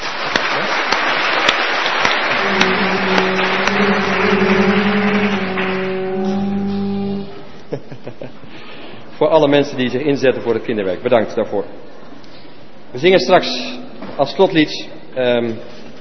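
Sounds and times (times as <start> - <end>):
crowd applause: 0.0 - 7.5
low droning tone: 2.3 - 7.7
laughter: 7.6 - 8.5
speech: 9.3 - 11.8, 12.9 - 15.8.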